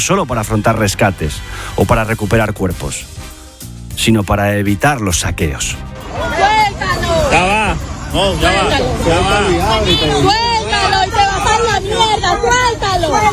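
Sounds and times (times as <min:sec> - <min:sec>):
speech: 0:00.0 - 0:03.3, 0:04.0 - 0:10.5
group of people shouting at police officer: 0:06.0 - 0:13.3.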